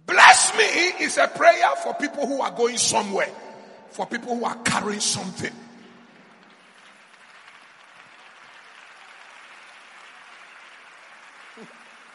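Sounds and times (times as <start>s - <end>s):
speech: 0.9s - 5.6s
audience clapping: 4.7s - 12.1s.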